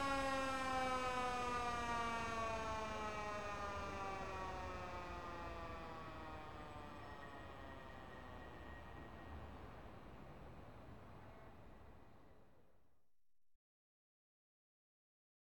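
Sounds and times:
American ambulance siren: 0:00.0 - 0:12.4.

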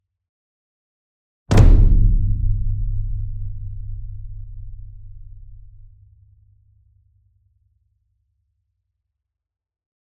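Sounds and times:
large concert bass drum flam: 0:01.5 - 0:06.2.

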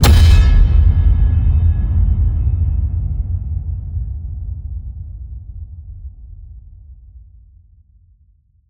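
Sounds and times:
massive cinematic hits: 0:00.0 - 0:03.9.

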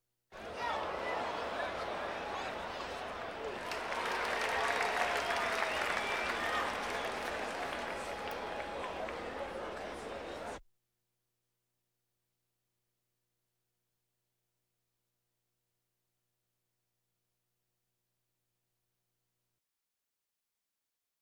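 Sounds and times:
crowds: 0:00.4 - 0:10.6.

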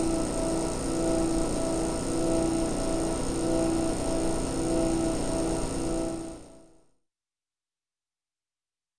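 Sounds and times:
soft drink fountain compressor running: 0:00.0 - 0:06.3.

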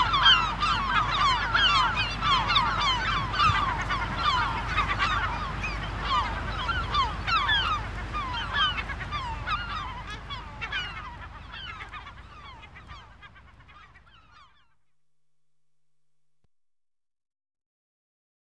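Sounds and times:
gulls screeching in the dunes: 0:00.0 - 0:14.5.

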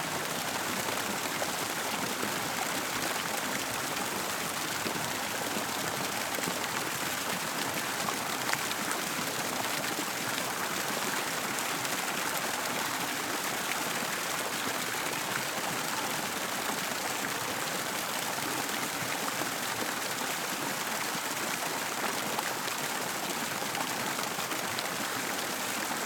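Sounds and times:
turbulent tumultuous fountain with five spouts at water level: 0:00.0 - 0:26.0.

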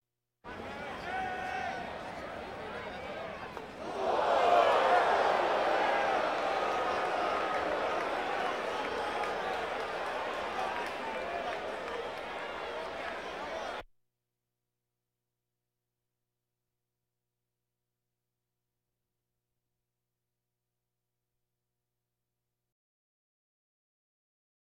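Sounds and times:
crowds: 0:00.5 - 0:13.8.

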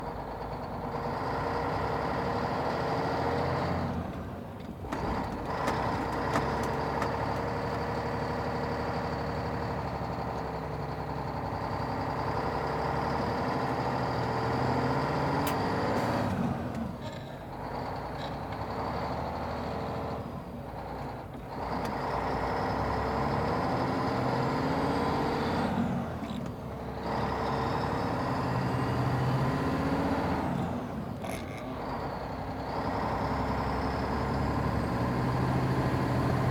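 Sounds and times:
semi truck engine: 0:00.0 - 0:36.5.

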